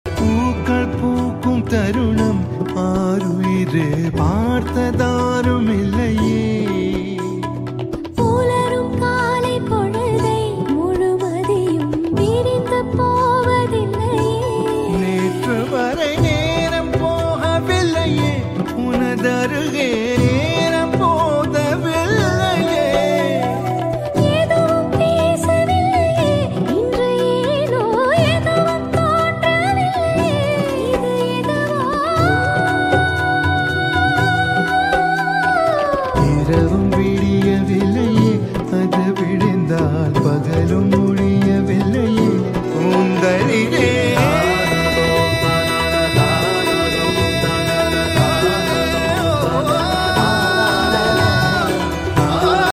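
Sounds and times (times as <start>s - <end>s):
Tamil song: 0.1s - 52.7s.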